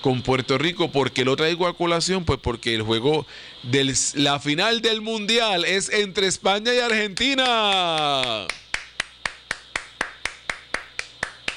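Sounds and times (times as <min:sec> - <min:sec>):
speech: 0:00.0 - 0:08.6
applause: 0:06.9 - 0:11.5.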